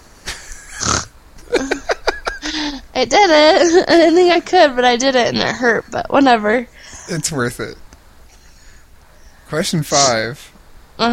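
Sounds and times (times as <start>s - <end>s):
person imitating a pig with snorts and grunts: 0.7s - 1.1s
laughter: 1.4s - 2.8s
speech: 3.0s - 7.8s, 9.5s - 11.1s.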